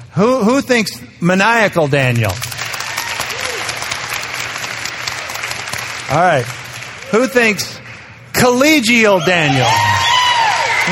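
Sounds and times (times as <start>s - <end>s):
speech: 0.2s - 2.5s, 6.1s - 7.8s, 8.4s - 9.9s
audience applauding to vote: 2.4s - 8.2s, 9.6s - 10.9s.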